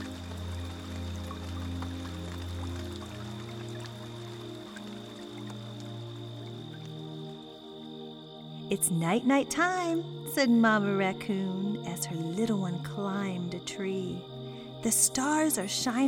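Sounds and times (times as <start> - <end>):
rain pattering: 0.0 - 8.0
speech: 8.7 - 16.0.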